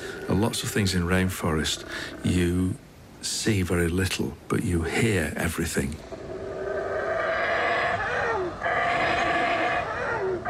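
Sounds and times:
male monkeys roaring and howling across canopy: 0:00.0 - 0:00.7, 0:06.0 - 0:10.4
speech: 0:00.4 - 0:06.2.

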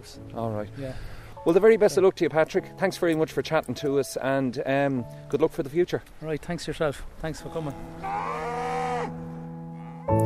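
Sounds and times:
speech: 0:00.0 - 0:08.4
herd of cows mooing on a Leitrim farm: 0:07.9 - 0:10.1.

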